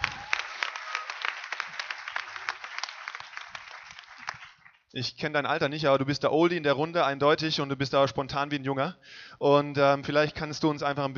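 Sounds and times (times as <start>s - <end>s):
applause: 0.0s - 4.9s
speech: 5.0s - 11.1s.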